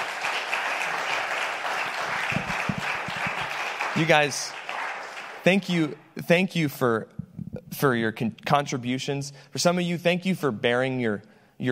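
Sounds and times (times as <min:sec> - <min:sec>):
audience applauding panel members at an evening event: 0:00.0 - 0:05.9
speech: 0:04.0 - 0:04.6, 0:05.4 - 0:11.7.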